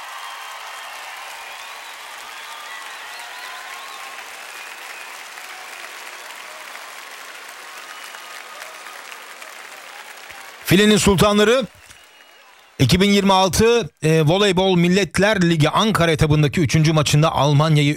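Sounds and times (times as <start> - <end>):
applause: 0.0 - 13.6
speech: 10.7 - 11.8, 12.8 - 17.9.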